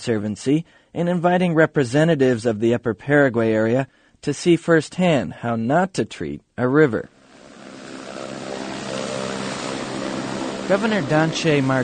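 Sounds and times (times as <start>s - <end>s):
speech: 0.0s - 7.2s, 10.7s - 11.8s
small jet airplane engine droning in flight: 7.2s - 11.8s.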